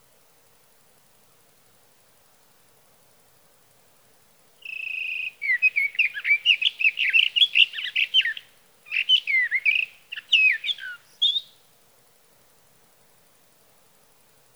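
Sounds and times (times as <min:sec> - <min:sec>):
Sage Thrasher singing: 0:04.6 - 0:11.6.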